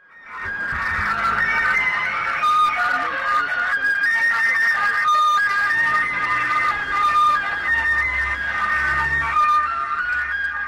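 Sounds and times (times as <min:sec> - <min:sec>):
gas delivery truck jingle tune: 0:00.2 - 0:10.6.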